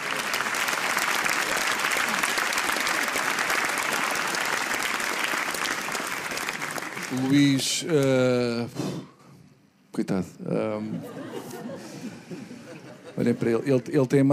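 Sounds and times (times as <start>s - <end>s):
audience applause: 0.0s - 7.7s
speech: 7.1s - 9.1s, 10.0s - 11.5s, 13.2s - 14.3s
laughter: 10.7s - 14.0s.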